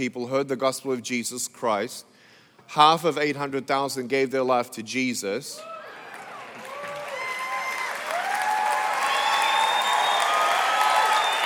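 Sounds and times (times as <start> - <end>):
speech: 0.0 - 5.7
audience applauding: 5.8 - 11.4.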